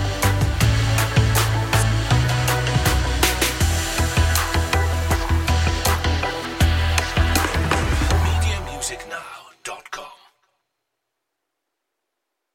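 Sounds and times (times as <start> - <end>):
backing track without lead: 0.0 - 9.4.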